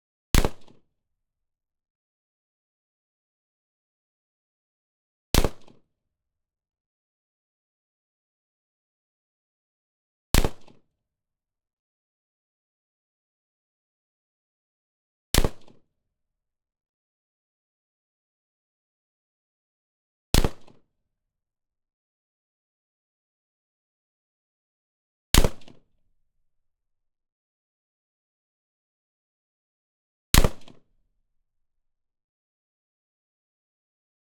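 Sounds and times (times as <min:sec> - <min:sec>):
SVD Dragunov 7.62×54R rifle single shots: 0:05.4 - 0:05.8, 0:10.4 - 0:10.8, 0:20.4 - 0:20.7, 0:30.4 - 0:30.8.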